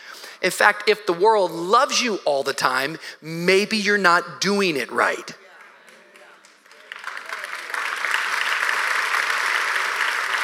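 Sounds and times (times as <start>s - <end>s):
speech: 0.4s - 5.4s
audience clapping: 5.0s - 10.4s.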